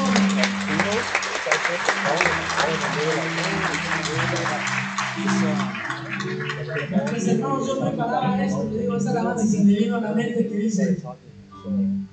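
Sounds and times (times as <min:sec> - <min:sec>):
audience applause: 0:00.0 - 0:08.0
speech: 0:06.8 - 0:12.0.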